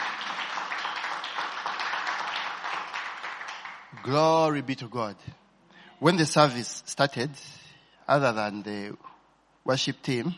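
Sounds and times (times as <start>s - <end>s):
audience hand clapping: 0.0s - 4.6s
speech: 4.0s - 5.4s, 6.0s - 10.3s.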